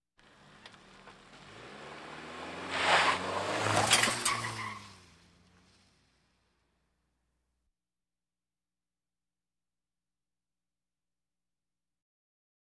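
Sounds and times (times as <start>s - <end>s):
various automobiles: 0.2s - 7.0s.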